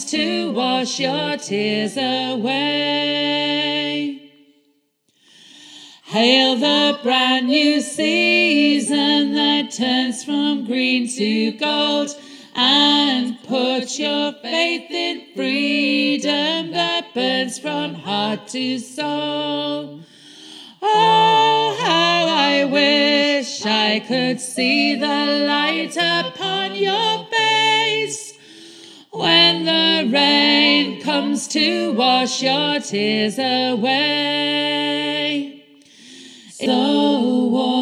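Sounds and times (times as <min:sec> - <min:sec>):
gospel choir bass voices singing an octave above: 0:00.0 - 0:04.6, 0:06.0 - 0:37.8.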